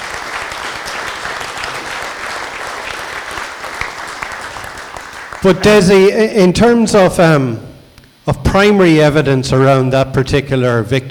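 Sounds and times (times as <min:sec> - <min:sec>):
round of applause: 0:00.0 - 0:06.0
speech: 0:05.4 - 0:07.6, 0:08.2 - 0:11.0.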